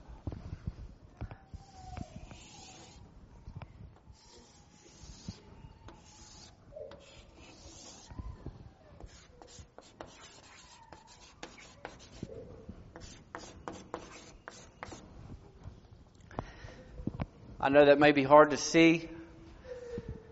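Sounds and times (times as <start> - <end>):
someone sketching a very simple illustration: 1.6 - 3.0, 4.1 - 8.2, 9.0 - 12.3, 13.0 - 15.0
speech: 17.6 - 19.2.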